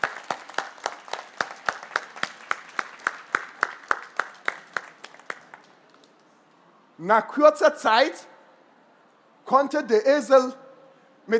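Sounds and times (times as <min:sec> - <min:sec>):
audience applause: 0:00.0 - 0:06.2
speech: 0:07.0 - 0:08.3, 0:09.5 - 0:10.6.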